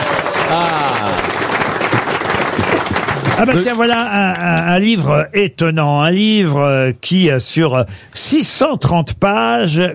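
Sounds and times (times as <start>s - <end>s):
person cheering: 0.0s - 1.3s
audience applause: 0.0s - 4.5s
speech: 0.5s - 1.3s, 3.4s - 9.9s.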